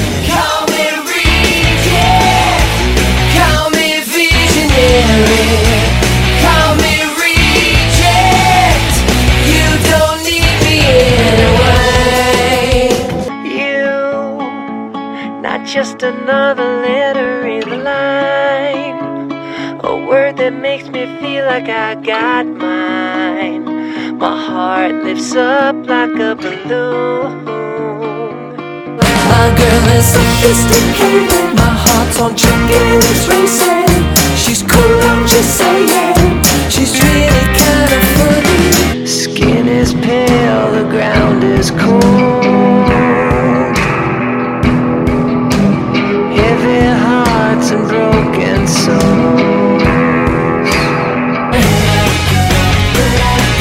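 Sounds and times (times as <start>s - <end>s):
person singing: 0.1s - 44.6s, 45.6s - 53.5s.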